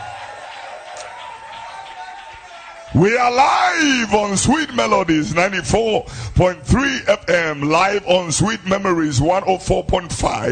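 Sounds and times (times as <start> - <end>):
audience clapping and cheering: 0.0 - 4.3
speech: 2.9 - 10.4.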